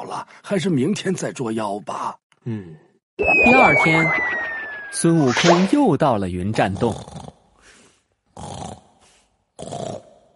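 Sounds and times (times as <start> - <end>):
speech: 0.1 - 7.3, 9.6 - 10.0
snoring: 8.3 - 10.3.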